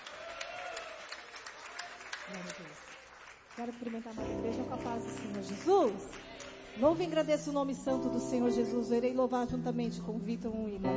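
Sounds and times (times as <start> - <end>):
people clapping: 0.0 - 7.2
speech: 2.3 - 3.0, 3.6 - 10.9.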